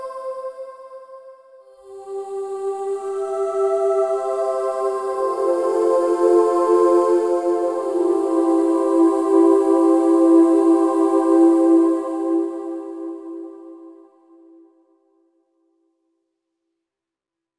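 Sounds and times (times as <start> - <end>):
angelic voice: 1.9 - 14.4.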